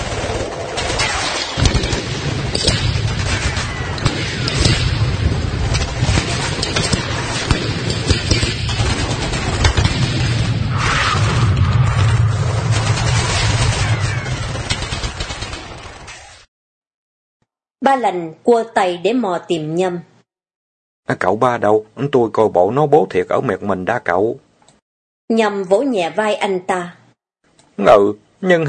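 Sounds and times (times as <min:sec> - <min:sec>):
gunfire from large and small guns: 0:00.0 - 0:11.1, 0:12.0 - 0:16.4
speech: 0:17.9 - 0:20.1, 0:21.1 - 0:24.4, 0:25.3 - 0:27.0, 0:27.8 - 0:28.6.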